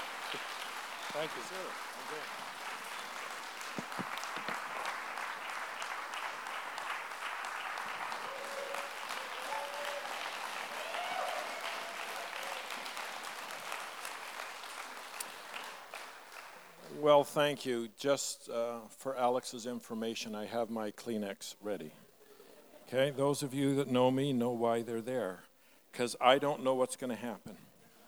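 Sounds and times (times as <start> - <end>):
audience applause welcoming a speaker: 0.0 - 17.0
speech: 1.2 - 2.6, 17.0 - 22.0, 22.9 - 27.6.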